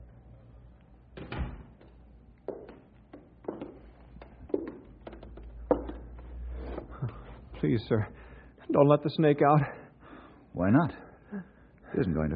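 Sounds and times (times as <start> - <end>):
door being closed: 1.2 - 1.9
speech: 7.6 - 9.8, 10.6 - 12.3.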